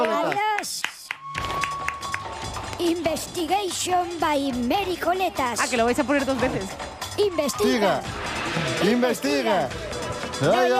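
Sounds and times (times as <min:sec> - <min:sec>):
applause: 0:00.0 - 0:02.8
speech: 0:02.8 - 0:10.7.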